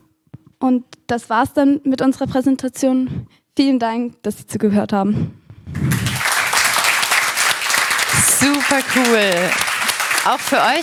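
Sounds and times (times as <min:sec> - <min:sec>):
speech: 0:00.6 - 0:05.9, 0:08.4 - 0:10.8
applause for a student group after their presentation: 0:05.7 - 0:10.8.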